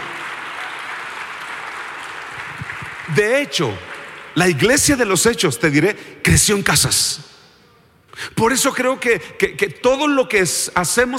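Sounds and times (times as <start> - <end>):
crowd applause: 0.0 - 4.4
speech: 3.1 - 7.3, 8.2 - 11.1.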